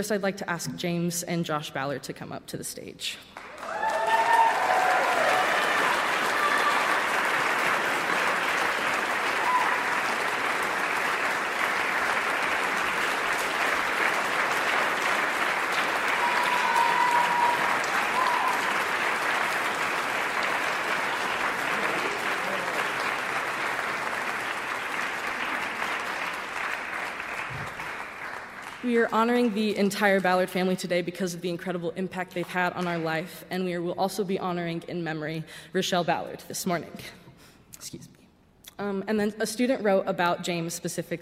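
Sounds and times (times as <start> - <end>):
speech: 0.0 - 3.4, 28.9 - 37.2, 37.8 - 38.1, 38.8 - 41.1
audience applause: 3.4 - 28.9.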